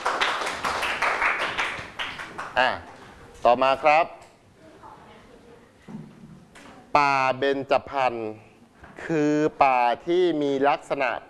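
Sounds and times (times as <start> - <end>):
students clapping for a classmate: 0.0 - 2.6
speech: 2.6 - 4.2, 7.0 - 11.2.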